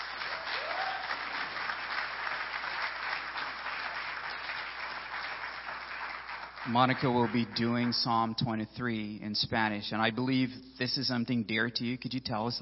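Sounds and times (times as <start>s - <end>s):
audience applause: 0.0s - 7.9s
speech: 6.6s - 12.6s.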